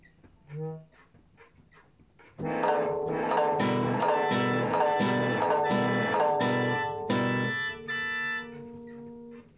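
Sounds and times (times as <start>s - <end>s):
harmonium: 2.4s - 9.5s.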